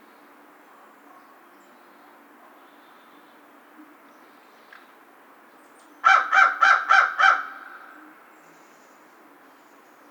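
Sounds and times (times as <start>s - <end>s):
American crow cawing: 6.0s - 7.9s.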